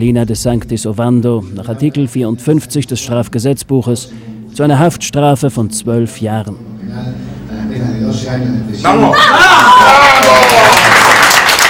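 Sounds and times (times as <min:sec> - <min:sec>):
speech: 0:00.0 - 0:10.9
woman's cry of jubilation in courtroom: 0:09.1 - 0:10.5.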